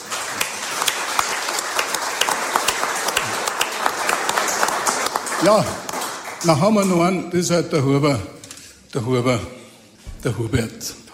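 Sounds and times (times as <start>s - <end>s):
audience applause: 0.0s - 6.9s
speech: 5.4s - 9.6s, 10.2s - 11.0s.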